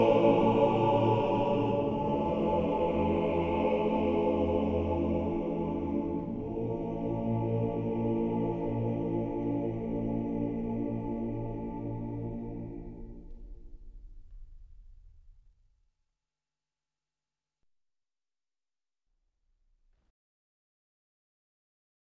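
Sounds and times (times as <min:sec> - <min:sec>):
Orthodox male choir singing a prayer: 0:00.0 - 0:13.4.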